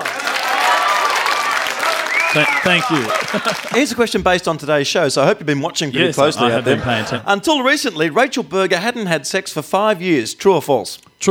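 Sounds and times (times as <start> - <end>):
cheers and whistles: 0.0 - 3.8
audience applause: 0.0 - 4.5
laughter: 0.0 - 7.8
speech: 2.3 - 11.2.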